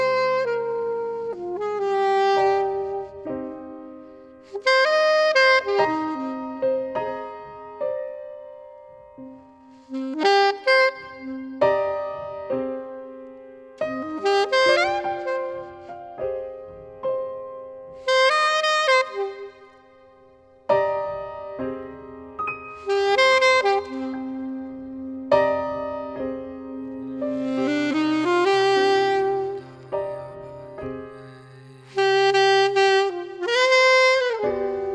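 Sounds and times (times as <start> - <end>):
alto saxophone: 0.0 - 34.9
piano: 0.0 - 34.9
person singing: 27.0 - 33.5.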